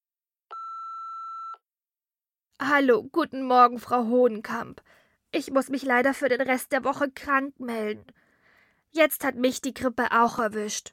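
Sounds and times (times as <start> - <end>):
daycare centre's answering machine beep tone: 0.5 - 1.6
speech: 2.6 - 8.2, 8.9 - 10.9.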